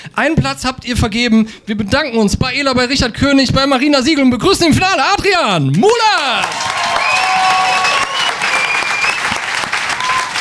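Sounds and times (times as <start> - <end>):
speech: 0.2 - 7.7
audience applause: 5.4 - 10.4.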